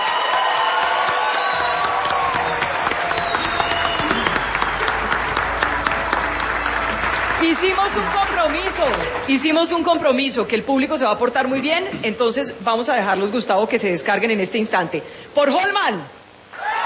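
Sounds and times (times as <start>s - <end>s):
crowd applause and cheering: 0.0s - 9.9s, 16.5s - 16.8s
speech: 7.6s - 16.2s.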